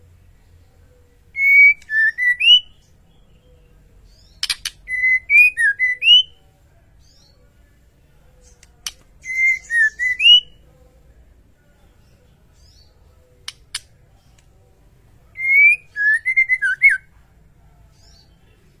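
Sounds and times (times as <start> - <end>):
white-rumped shama singing whistled phrases: 1.4 - 2.8, 4.4 - 6.4, 9.2 - 10.6, 15.4 - 17.1
sharp snapping clicks: 4.4 - 4.9, 8.5 - 9.2, 13.4 - 14.6.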